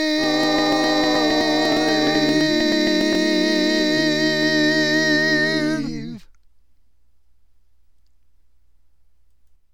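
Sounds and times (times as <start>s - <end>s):
lead voice singing barbershop: 0.0s - 6.3s.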